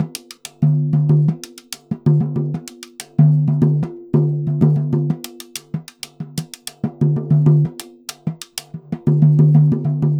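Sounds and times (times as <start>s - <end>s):
repique drum playing samba rhythm: 0.0s - 10.1s.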